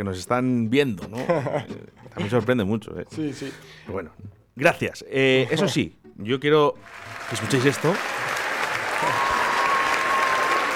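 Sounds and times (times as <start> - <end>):
speech: 0.0 - 8.3
laughter: 1.0 - 4.4, 7.2 - 10.7
crowd applause: 6.8 - 10.7.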